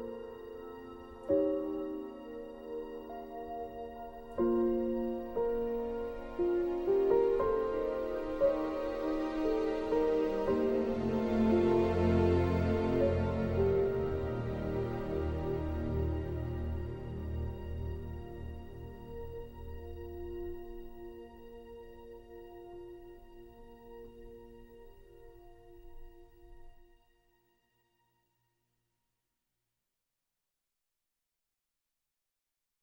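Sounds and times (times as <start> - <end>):
piano duet: 0.0 - 26.1.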